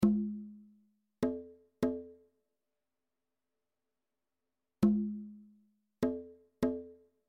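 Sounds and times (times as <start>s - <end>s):
bongos: 0.0s - 2.2s, 4.8s - 7.0s.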